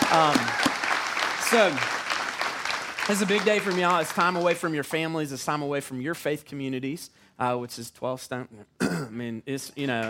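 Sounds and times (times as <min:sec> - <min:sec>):
audience applause welcoming guests: 0:00.0 - 0:04.7
speech: 0:00.2 - 0:00.7, 0:01.5 - 0:02.0, 0:03.1 - 0:10.0.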